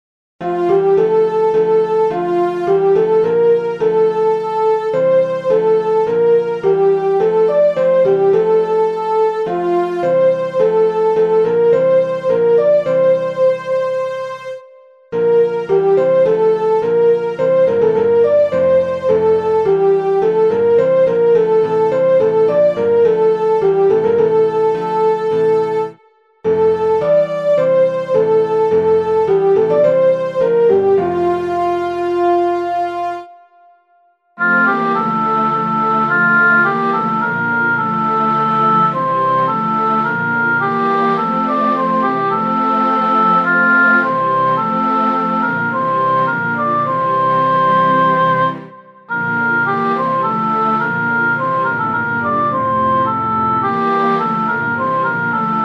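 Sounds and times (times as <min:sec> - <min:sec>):
keyboard piece: 0:00.4 - 0:55.6.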